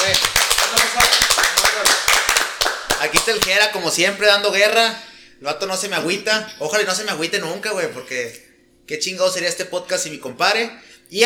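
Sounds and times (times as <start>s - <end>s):
crowd clapping: 0.0s - 4.2s
speech: 3.2s - 11.2s.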